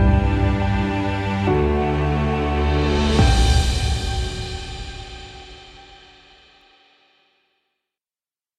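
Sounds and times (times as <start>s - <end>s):
heroic cinematic background music: 0.0s - 6.0s.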